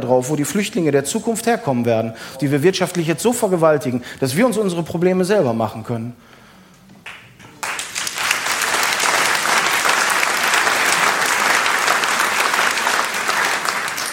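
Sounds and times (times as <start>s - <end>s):
speech: 0.0s - 6.4s
audience applause: 7.0s - 14.1s.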